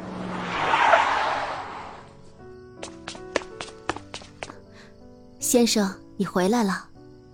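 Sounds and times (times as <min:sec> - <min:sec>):
black BMW engine and tyres driving into a garage: 0:00.0 - 0:02.4
speech: 0:05.5 - 0:06.9.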